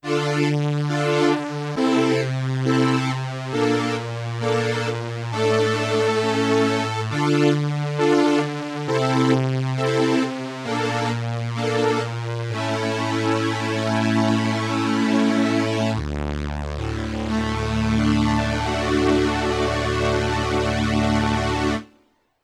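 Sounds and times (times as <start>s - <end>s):
strings: 0.1s - 21.9s.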